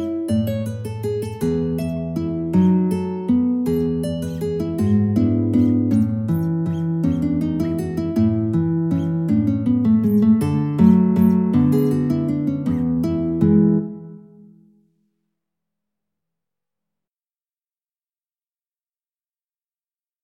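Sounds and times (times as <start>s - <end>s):
guitar waltz: 0.0s - 14.8s.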